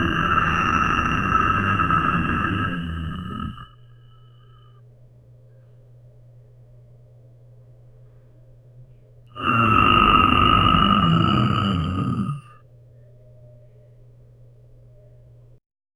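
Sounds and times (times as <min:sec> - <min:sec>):
soft goblin grunting: 0:00.0 - 0:03.7, 0:09.4 - 0:12.5.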